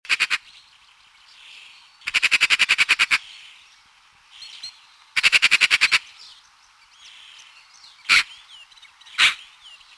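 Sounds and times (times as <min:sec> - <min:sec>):
Eurasian magpie uttering rasping chack calls: 0:00.1 - 0:00.4, 0:02.1 - 0:03.3, 0:05.2 - 0:06.0, 0:08.1 - 0:08.4, 0:09.2 - 0:09.5.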